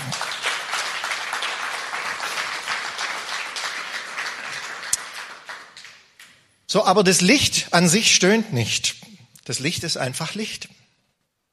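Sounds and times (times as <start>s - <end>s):
audience applause: 0.0s - 6.0s
speech: 6.7s - 10.8s.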